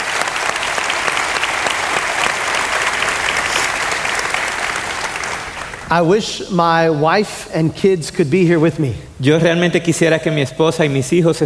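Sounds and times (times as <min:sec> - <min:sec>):
crowd clapping: 0:00.0 - 0:06.0
speech: 0:05.9 - 0:11.4.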